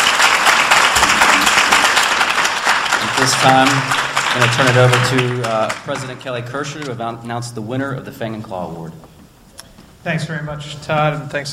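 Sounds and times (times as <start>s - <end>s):
crowd applause: 0.0s - 6.9s
speech: 3.3s - 9.1s, 10.0s - 11.5s.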